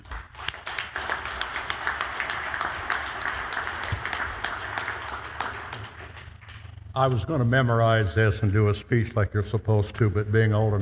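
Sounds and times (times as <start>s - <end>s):
crowd applause: 0.0s - 6.6s
speech: 7.0s - 10.8s.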